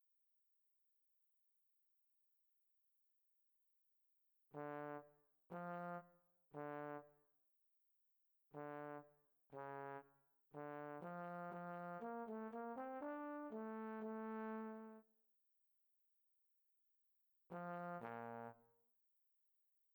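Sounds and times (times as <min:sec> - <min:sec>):
classical trombone: 0:04.6 - 0:06.0, 0:06.6 - 0:07.1, 0:08.6 - 0:10.0, 0:10.6 - 0:15.0, 0:17.5 - 0:18.6.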